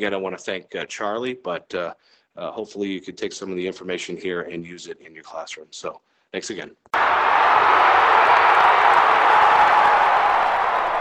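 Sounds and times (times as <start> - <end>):
speech: 0.0 - 8.4
audience cheering and clapping: 7.0 - 10.9.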